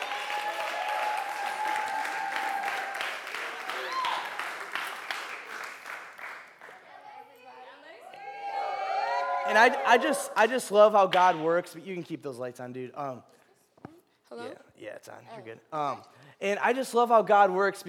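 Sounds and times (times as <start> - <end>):
audience applause: 0.0 - 6.7
speech: 9.5 - 13.4, 14.3 - 17.8.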